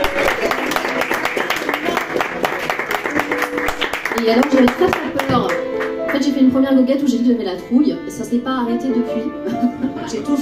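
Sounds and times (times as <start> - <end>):
audience applause: 0.0 - 6.2
speech: 4.2 - 10.4.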